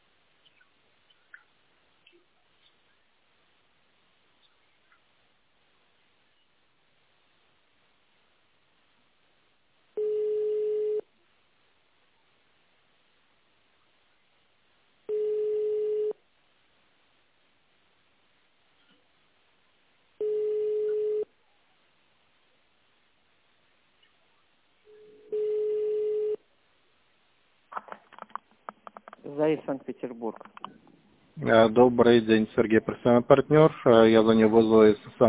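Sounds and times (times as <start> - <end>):
telephone ringback tone: 10.0 - 11.0, 15.1 - 16.2, 20.2 - 21.3, 25.1 - 26.4
speech: 29.3 - 35.2.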